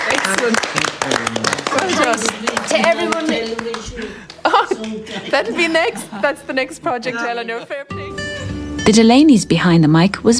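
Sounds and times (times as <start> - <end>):
small group applauding: 0.0 - 5.6
speech: 0.3 - 0.9, 5.2 - 8.0, 8.8 - 10.3
laughter: 1.0 - 8.6.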